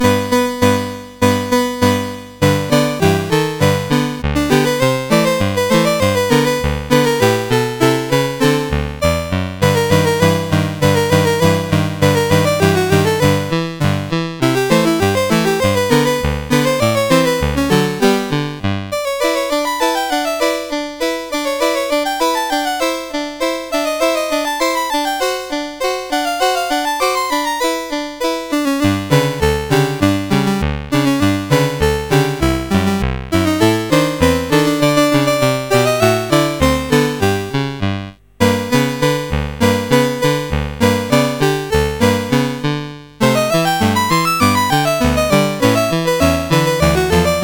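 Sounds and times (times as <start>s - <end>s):
chiptune Christmas music on CSG8580 chip: 0.0s - 47.4s.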